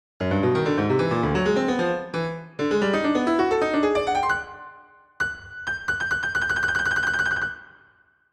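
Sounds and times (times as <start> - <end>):
piano etude: 0.2 - 7.6.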